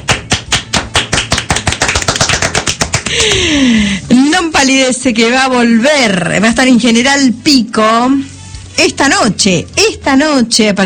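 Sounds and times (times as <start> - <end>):
hands clapping: 0.0 - 3.6
speech: 3.1 - 10.8.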